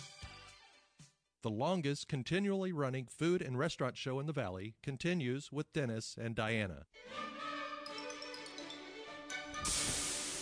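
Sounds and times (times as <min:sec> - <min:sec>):
music: 0:00.0 - 0:01.3, 0:07.0 - 0:10.4
speech: 0:01.4 - 0:07.4
steak sizzling on a grill: 0:09.7 - 0:10.4.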